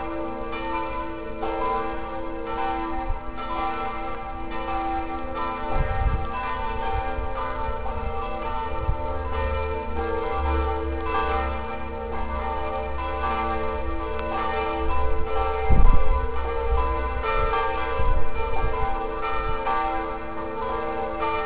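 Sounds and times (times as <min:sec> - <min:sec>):
bells: 0:00.0 - 0:21.4.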